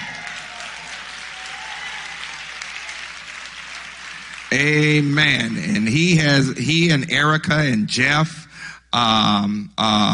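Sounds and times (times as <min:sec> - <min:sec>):
audience clapping: 0:00.0 - 0:06.0
speech: 0:04.6 - 0:10.1.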